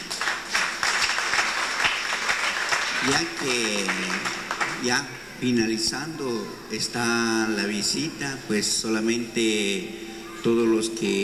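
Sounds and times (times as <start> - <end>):
church congregation applauding during a religious service: 0.0 - 5.1
speech: 3.0 - 11.2.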